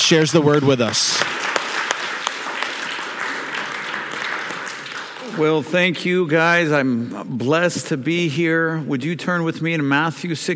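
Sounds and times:
audience applause: 0:00.0 - 0:06.2
speech: 0:00.1 - 0:01.4, 0:05.4 - 0:10.5.

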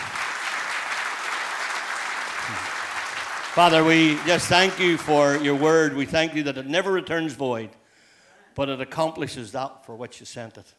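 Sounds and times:
audience applause welcoming speakers at a church gathering: 0:00.0 - 0:06.3
speech: 0:03.6 - 0:07.8, 0:08.6 - 0:10.7.

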